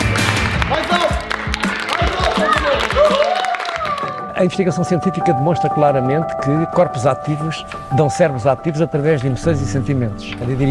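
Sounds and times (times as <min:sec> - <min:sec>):
applause: 0:00.0 - 0:04.3
speech: 0:04.4 - 0:10.7.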